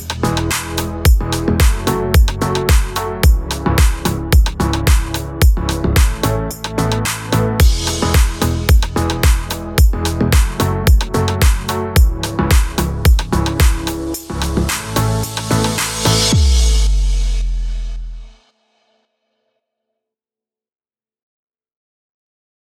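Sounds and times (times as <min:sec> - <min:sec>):
tropical house music bed in E major at 110 BPM: 0:00.0 - 0:17.2.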